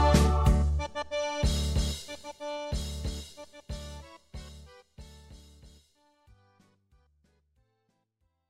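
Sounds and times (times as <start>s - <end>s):
circus songs backing track: 0.0s - 5.9s.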